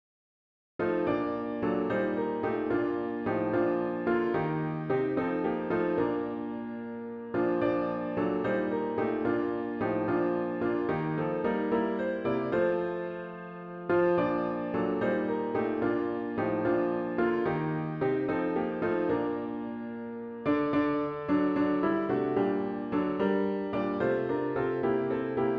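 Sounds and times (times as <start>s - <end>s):
hymn on piano with intro: 0.8s - 25.5s.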